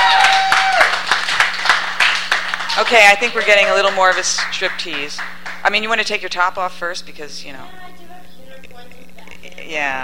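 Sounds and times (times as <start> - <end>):
audience members clapping for a woman: 0.0 - 5.8
speech: 2.8 - 7.9, 9.7 - 10.0.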